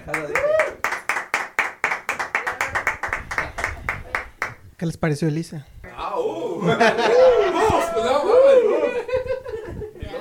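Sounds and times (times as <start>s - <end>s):
audience applause: 0.0s - 4.4s
speech: 0.1s - 0.6s, 4.8s - 5.7s, 6.6s - 7.4s
laughter: 6.4s - 10.2s.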